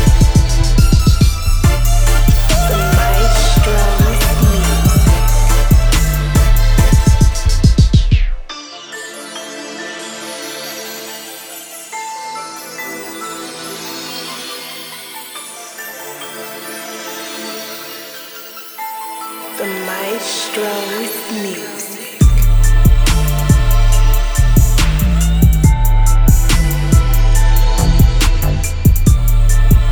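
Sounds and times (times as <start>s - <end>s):
music beat: 0.0s - 8.6s, 18.5s - 29.8s.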